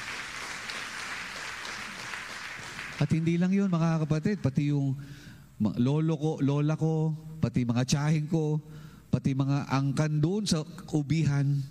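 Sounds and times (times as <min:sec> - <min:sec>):
church congregation applauding in praise of the Lord: 0:00.0 - 0:04.9
speech: 0:03.0 - 0:11.6.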